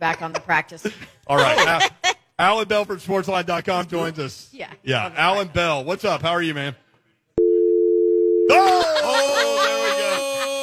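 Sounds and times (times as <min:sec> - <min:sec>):
speech: 0:00.0 - 0:06.8
people laughing: 0:01.3 - 0:02.2, 0:08.5 - 0:10.6
phone dial tone after caller hangs up: 0:07.4 - 0:08.5.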